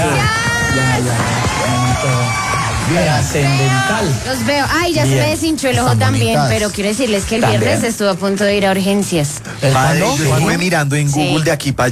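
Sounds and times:
audience applause and cheering: 0.0 - 5.0
speech: 2.9 - 11.8.

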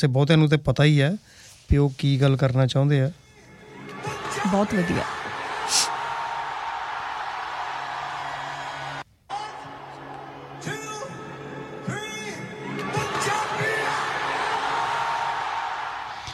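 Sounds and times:
speech: 0.0 - 3.2, 4.0 - 5.9
crowd screaming and cheering at Wembley: 3.6 - 16.3.

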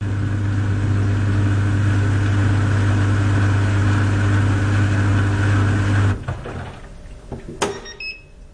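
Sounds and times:
small European clothes dryer running: 0.0 - 8.0
small European clothes dryer beeping: 7.6 - 8.4.

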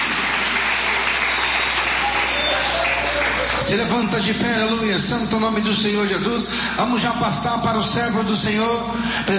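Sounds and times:
audience clapping: 0.0 - 4.3
speech: 3.7 - 9.3.

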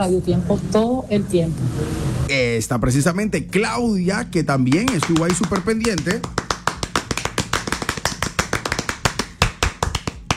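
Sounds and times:
speech: 0.0 - 6.4
small group hand clapping: 4.7 - 10.3.

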